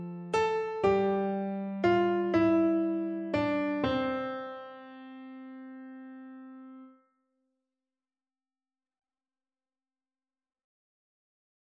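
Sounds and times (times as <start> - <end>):
piano: 0.0 - 7.0.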